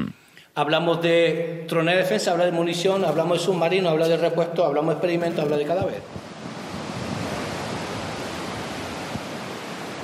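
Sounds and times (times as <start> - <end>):
speech: 0.6 - 6.2
waves on a beach: 6.0 - 10.0.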